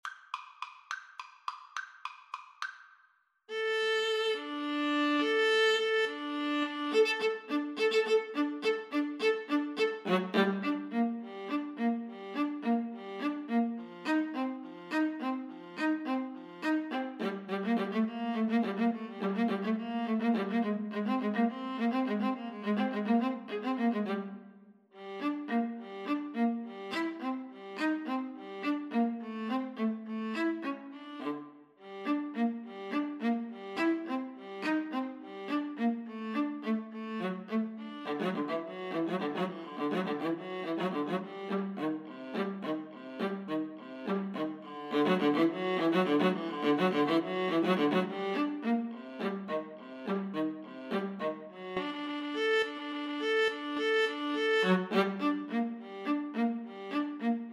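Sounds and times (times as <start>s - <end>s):
viola duet: 3.5s - 57.5s.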